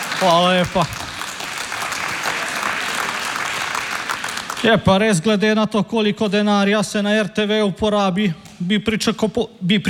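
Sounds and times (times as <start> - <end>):
big applause: 0.0 - 4.9
speech: 0.2 - 1.0, 4.6 - 9.8.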